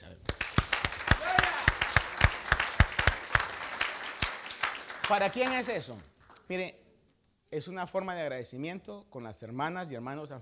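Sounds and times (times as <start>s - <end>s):
audience applause: 0.3s - 6.0s
speech: 5.1s - 6.8s, 7.5s - 10.3s.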